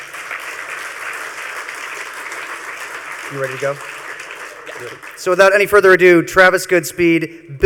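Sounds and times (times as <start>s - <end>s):
audience applause: 0.0s - 5.7s
speech: 3.3s - 4.0s, 4.8s - 7.6s.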